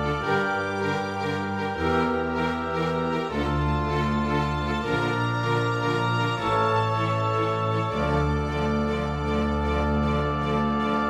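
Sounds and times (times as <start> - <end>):
woodwinds playing: 0.0 - 11.0.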